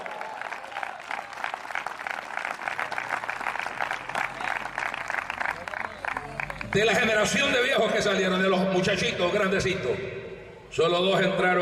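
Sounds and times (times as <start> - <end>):
audience applause: 0.0 - 7.5
scattered crowd voices: 0.0 - 7.6
speech: 6.8 - 11.5.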